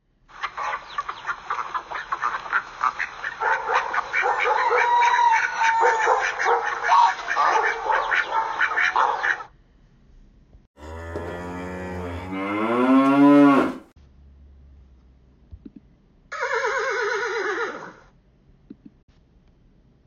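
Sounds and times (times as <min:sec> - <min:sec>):
animal sounds: 0:00.3 - 0:09.5, 0:10.8 - 0:13.9, 0:16.3 - 0:18.1.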